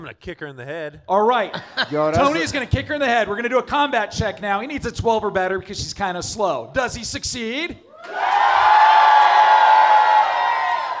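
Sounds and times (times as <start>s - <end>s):
speech: 0.0s - 8.9s
live audience cheering and whooping: 7.9s - 10.9s.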